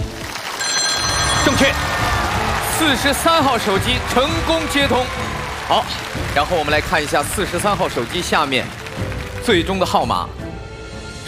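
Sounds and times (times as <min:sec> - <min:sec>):
excited voices and cheering: 0:00.2 - 0:10.2
mobile phone ringing: 0:00.4 - 0:01.9.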